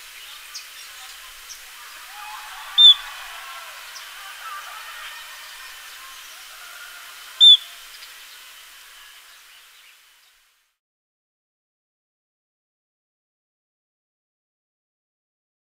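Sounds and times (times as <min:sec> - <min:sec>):
Chestnut munia high piping notes: 0:00.3 - 0:08.4.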